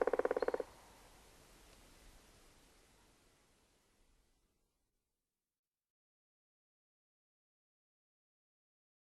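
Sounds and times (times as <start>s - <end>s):
bird calling in Estonian nature: 0.0s - 0.7s.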